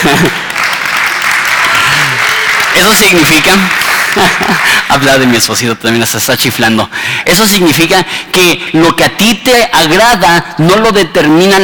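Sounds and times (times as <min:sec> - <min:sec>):
laughter: 0:00.0 - 0:00.6, 0:03.8 - 0:05.4
applause: 0:00.0 - 0:05.8
speech: 0:02.8 - 0:11.6.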